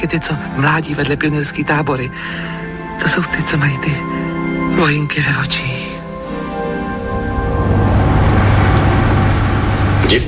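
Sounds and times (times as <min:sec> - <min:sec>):
speech: 0:00.0 - 0:05.8
motor engine running: 0:06.3 - 0:10.2.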